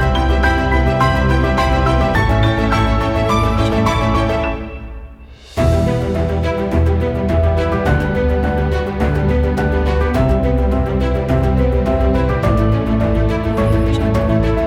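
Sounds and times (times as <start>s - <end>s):
emotional piano: 0.0s - 14.6s.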